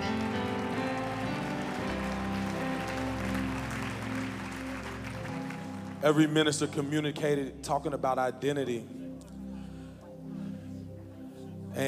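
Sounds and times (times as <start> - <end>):
audience clapping hands: 0.0 - 6.9
sustained keyboard chords: 0.0 - 11.8
speech: 6.0 - 9.0.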